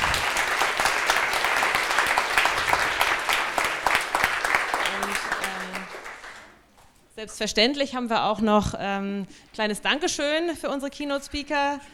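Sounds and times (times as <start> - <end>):
audience applause: 0.0 - 6.6
speech: 7.2 - 11.9.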